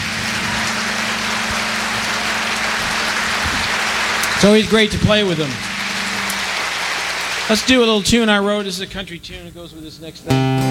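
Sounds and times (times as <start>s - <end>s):
audience applause: 0.0s - 8.5s
speech: 4.4s - 5.7s, 7.5s - 10.6s.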